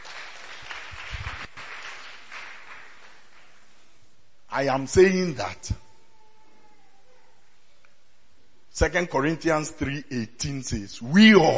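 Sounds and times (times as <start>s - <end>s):
audience clapping: 0.0s - 3.8s
speech: 4.6s - 5.8s, 8.8s - 11.5s.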